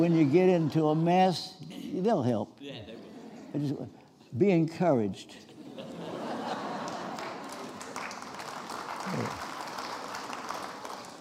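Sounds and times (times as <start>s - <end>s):
laughter: 0.0s - 1.9s, 2.6s - 3.9s, 5.3s - 7.9s
speech: 0.0s - 5.9s, 9.1s - 9.4s
audience applause: 6.4s - 11.1s.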